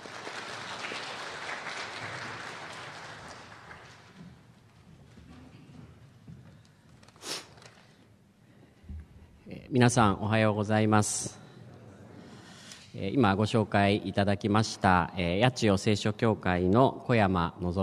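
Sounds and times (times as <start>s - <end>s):
audience applause welcoming a speaker: 0.0s - 4.2s
speech: 9.7s - 11.4s, 13.0s - 17.8s.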